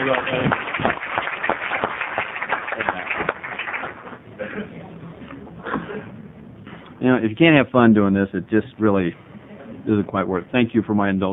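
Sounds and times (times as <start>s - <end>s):
round of applause: 0.0s - 4.2s
speech: 0.1s - 0.6s, 7.2s - 11.3s.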